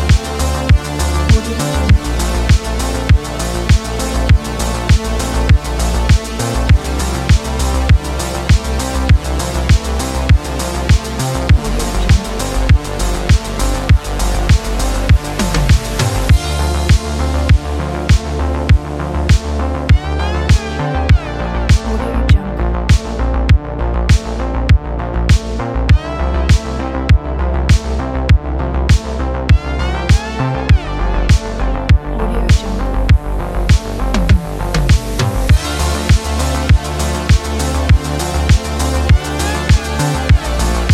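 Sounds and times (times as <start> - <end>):
80s retro synthwave music: 0.0 - 40.9.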